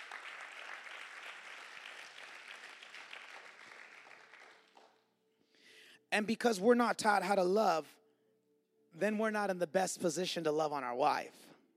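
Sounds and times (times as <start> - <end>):
audience clapping: 0.0 - 5.1
speech: 6.1 - 8.0, 9.0 - 11.5.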